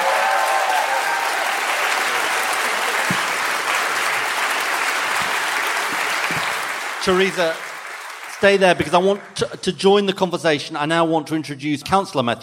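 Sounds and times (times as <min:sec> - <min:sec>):
audience clapping: 0:00.0 - 0:09.5
speech: 0:07.0 - 0:07.7, 0:08.4 - 0:12.4.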